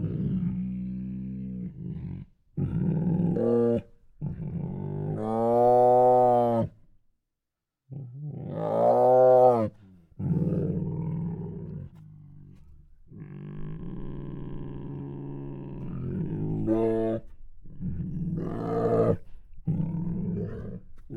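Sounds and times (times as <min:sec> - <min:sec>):
tiger growling and moaning: 0:00.0 - 0:06.8, 0:07.9 - 0:21.1.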